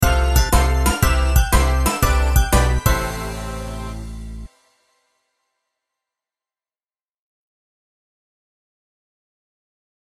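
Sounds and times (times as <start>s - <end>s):
game over sound: 0.4s - 4.5s.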